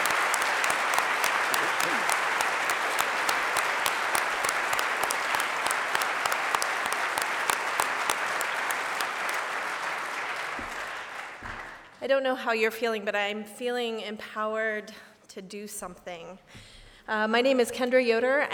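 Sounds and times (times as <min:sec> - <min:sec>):
audience applause: 0:00.0 - 0:11.9
speech: 0:12.1 - 0:18.5.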